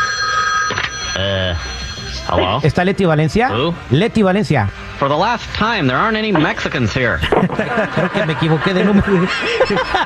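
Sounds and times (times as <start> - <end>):
telephone ringing: 0.0 - 2.5
speech: 1.2 - 10.0
laughter: 7.2 - 10.0.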